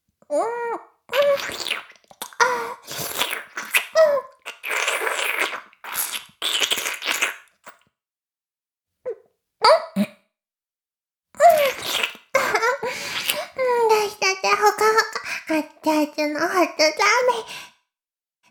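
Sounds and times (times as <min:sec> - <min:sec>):
oral sex sounds: 0:00.3 - 0:07.9, 0:11.4 - 0:17.6.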